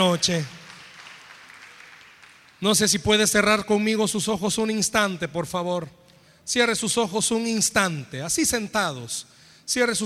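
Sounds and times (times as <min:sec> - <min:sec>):
speech: 0:00.0 - 0:00.6, 0:02.6 - 0:10.0
audience applause: 0:00.0 - 0:02.6.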